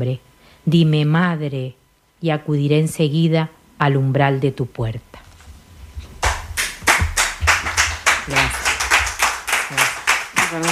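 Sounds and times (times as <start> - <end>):
speech: 0.0 - 5.1, 8.3 - 8.6
applause after a poetry reading: 6.2 - 10.7.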